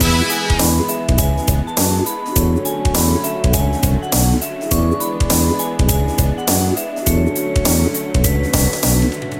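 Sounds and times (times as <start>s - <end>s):
platform game theme music loop: 0.0s - 9.3s.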